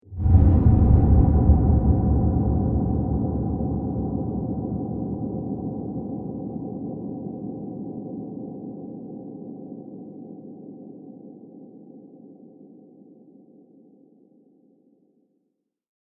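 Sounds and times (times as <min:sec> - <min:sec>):
deep epic film whoosh: 0:00.0 - 0:06.0.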